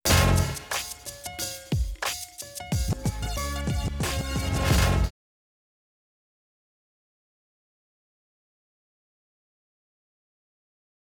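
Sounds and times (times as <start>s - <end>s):
music: 0.0s - 5.1s.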